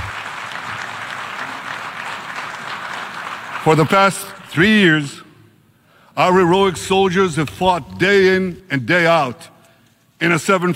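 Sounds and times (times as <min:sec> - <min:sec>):
audience applause after a speech: 0:00.0 - 0:04.5
speech: 0:03.6 - 0:05.2, 0:06.2 - 0:09.5, 0:10.2 - 0:10.7.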